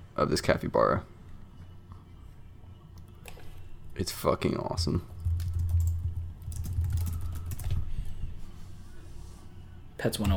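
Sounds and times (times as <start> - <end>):
low constant hum: 0.0 - 10.3
speech: 0.2 - 1.1, 4.0 - 5.1, 10.0 - 10.3
computer keyboard typing clicks: 5.2 - 7.8.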